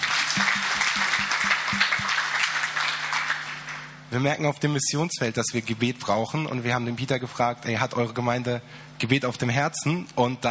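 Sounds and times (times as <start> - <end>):
low rhythmic thump: 0.0 - 2.2
audience applause: 0.0 - 3.9
speech: 4.1 - 10.4.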